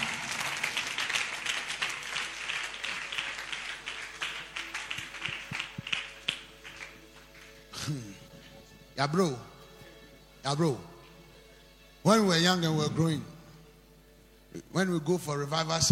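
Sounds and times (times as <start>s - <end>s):
audience clapping hands: 0.0s - 8.2s
speech: 9.0s - 9.5s, 10.4s - 10.9s, 12.0s - 13.3s, 14.8s - 15.8s.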